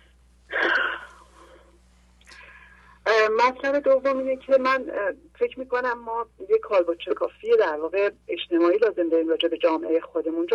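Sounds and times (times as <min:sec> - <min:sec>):
person taking a deep breath: 0:00.8 - 0:03.0
speech: 0:03.3 - 0:10.5.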